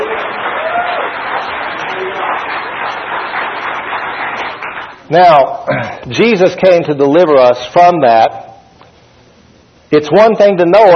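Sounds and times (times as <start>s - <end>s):
audience clapping: 0.0s - 5.1s
speech: 5.1s - 8.4s, 9.9s - 10.9s.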